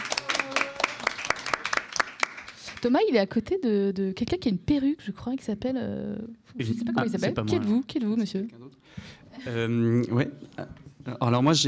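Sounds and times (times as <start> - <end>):
audience at an evening event giving scattered applause: 0.0 - 2.8
speech: 2.8 - 11.6.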